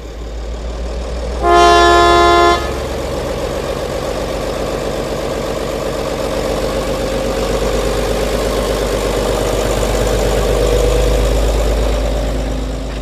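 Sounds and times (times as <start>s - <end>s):
train engine rumbling as the train pulls away: 0.0s - 12.9s
train horn: 1.4s - 3.1s.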